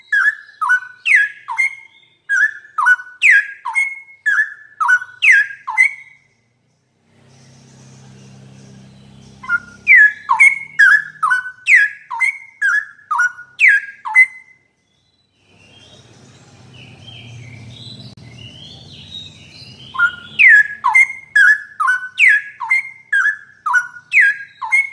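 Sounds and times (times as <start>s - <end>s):
bird singing whistled notes: 0.0s - 6.5s, 7.2s - 24.9s.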